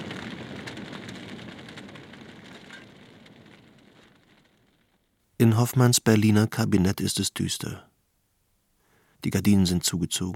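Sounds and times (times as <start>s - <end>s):
crackling fire: 0.0s - 7.8s
speech: 5.4s - 7.9s, 9.2s - 10.3s.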